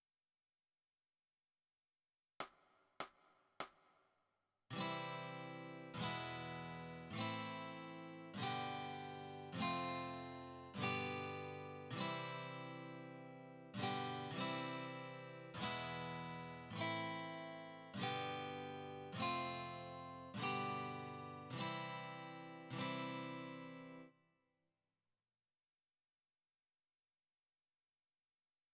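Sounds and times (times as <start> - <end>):
guitar: 4.7 - 24.2.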